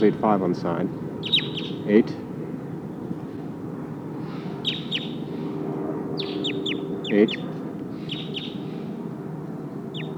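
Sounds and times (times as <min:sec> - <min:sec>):
speech: 0:00.0 - 0:02.2, 0:07.1 - 0:07.5
Sitkensis bird calling in trees: 0:01.1 - 0:02.4, 0:04.1 - 0:09.2, 0:09.8 - 0:10.1.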